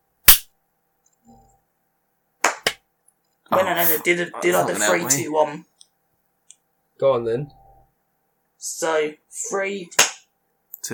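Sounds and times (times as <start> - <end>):
hand clap to sync audio: 2.4 - 2.8, 10.0 - 10.2
speech: 3.5 - 5.7, 7.0 - 7.6, 8.6 - 10.0.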